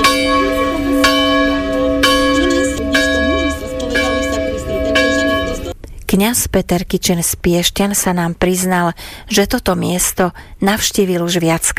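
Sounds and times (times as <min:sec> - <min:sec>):
church bells ringing: 0:00.0 - 0:05.8
faint murmuring voices: 0:00.0 - 0:05.8
speech: 0:06.3 - 0:11.7.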